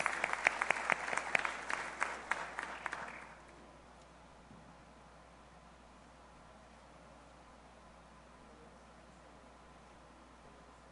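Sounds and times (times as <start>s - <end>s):
applause: 0.0s - 3.5s.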